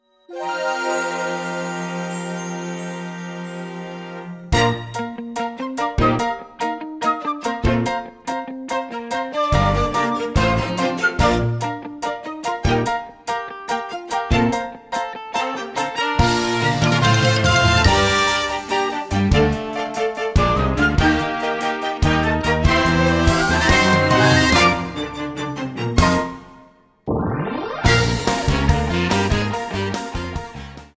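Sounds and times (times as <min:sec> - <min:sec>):
musical accompaniment: 0:00.2 - 0:30.9.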